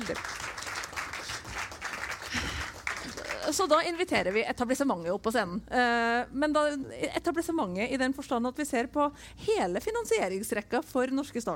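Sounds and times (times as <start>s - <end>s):
audience applause: 0.0s - 3.5s
speech: 0.1s - 0.4s, 3.5s - 11.5s.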